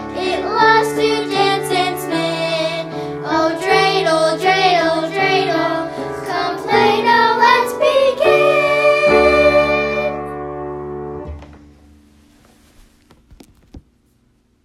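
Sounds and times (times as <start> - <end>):
person singing: 0.0 - 10.3.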